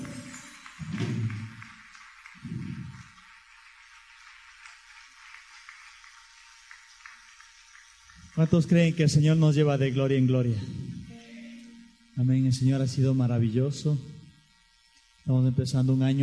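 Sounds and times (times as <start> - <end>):
audience applause: 0.0 - 9.4
speech: 8.4 - 10.9, 12.2 - 14.1, 15.2 - 16.2.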